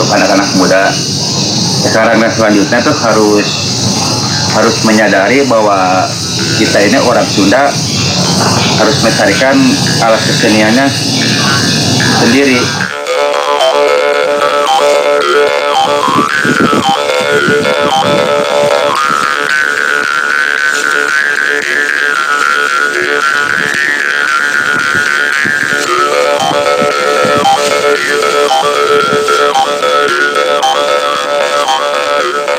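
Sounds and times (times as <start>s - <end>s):
karinding bamboo jaw harp being played: 0.0s - 32.5s
speech: 0.1s - 3.9s, 4.6s - 13.0s, 15.4s - 19.3s.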